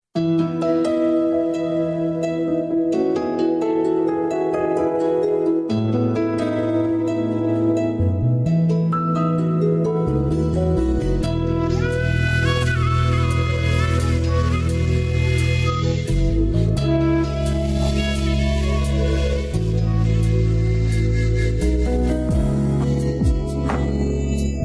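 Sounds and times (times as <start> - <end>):
lullaby song: 0.2 - 24.6.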